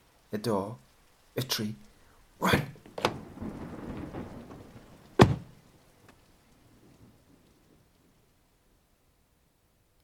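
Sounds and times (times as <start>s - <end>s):
heavy rain: 0.0s - 10.0s
speech: 0.3s - 2.8s
thunderclap: 2.4s - 8.2s.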